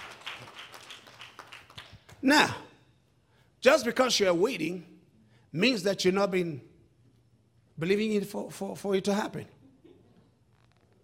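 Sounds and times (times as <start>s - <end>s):
audience clapping: 0.0s - 2.2s
speech: 2.2s - 2.6s, 3.6s - 4.9s, 5.5s - 6.7s, 7.8s - 9.6s.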